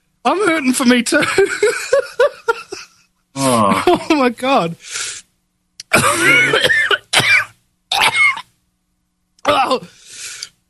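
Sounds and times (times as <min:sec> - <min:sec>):
speech: 0:00.2 - 0:02.2, 0:03.6 - 0:05.0, 0:06.0 - 0:06.8, 0:09.5 - 0:10.0
person coughing after swallowing something stuck in the throat: 0:05.9 - 0:08.5.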